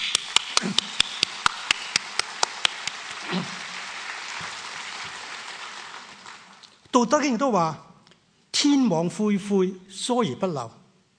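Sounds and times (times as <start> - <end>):
applause: 0.0 - 6.9
speech: 7.0 - 7.8, 8.6 - 10.8.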